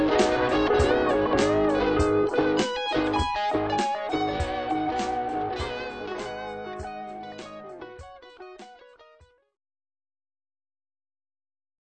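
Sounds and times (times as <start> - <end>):
delay effect: 0.0 - 8.1.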